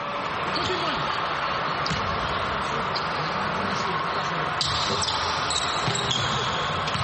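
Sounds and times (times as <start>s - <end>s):
dense noise: 0.0s - 7.0s
basketball bouncing before a free throw: 1.8s - 2.5s, 4.6s - 7.0s.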